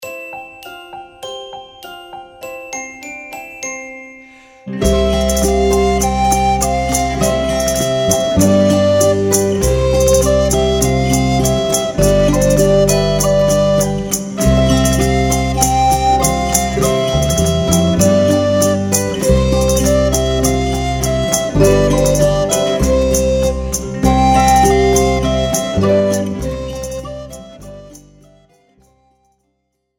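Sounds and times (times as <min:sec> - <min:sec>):
alto recorder playing a gavotte in C: 0:04.8 - 0:28.6.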